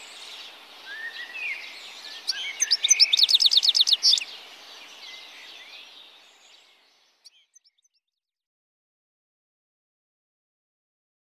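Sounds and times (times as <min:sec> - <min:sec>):
goldfinch singing: 0:00.0 - 0:08.0.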